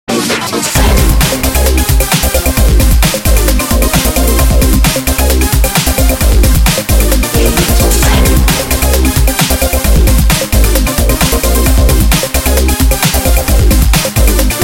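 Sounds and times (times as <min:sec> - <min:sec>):
remix music: 0:00.1 - 0:14.6.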